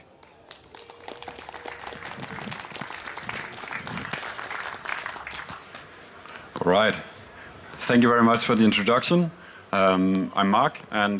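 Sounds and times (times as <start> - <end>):
audience applause: 0.0 - 5.9
speech: 6.6 - 7.1, 7.9 - 11.1.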